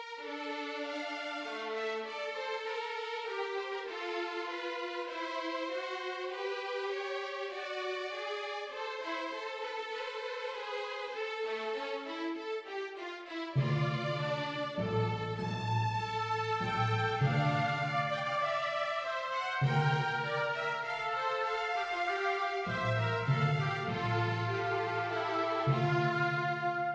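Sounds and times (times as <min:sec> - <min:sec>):
orchestral music: 0:00.2 - 0:26.9.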